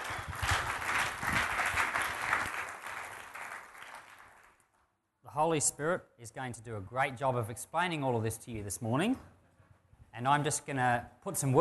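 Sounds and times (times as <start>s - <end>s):
audience applause welcoming a speaker: 0.0s - 4.7s
speech: 5.4s - 9.3s, 10.2s - 11.6s.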